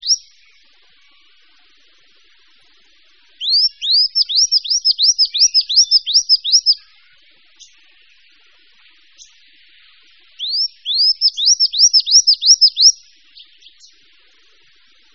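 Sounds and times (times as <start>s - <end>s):
bird whistled song: 0.0s - 1.3s, 3.4s - 7.0s, 9.1s - 9.4s, 10.4s - 14.0s.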